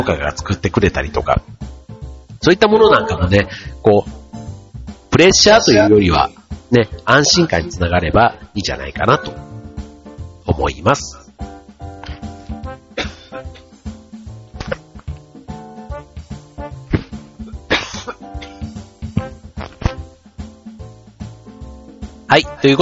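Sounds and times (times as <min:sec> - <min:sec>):
speech: 0:00.0 - 0:01.6, 0:02.4 - 0:04.2, 0:05.2 - 0:09.5, 0:10.5 - 0:11.5, 0:22.3 - 0:22.8
person coughing: 0:12.9 - 0:13.7, 0:16.9 - 0:19.4.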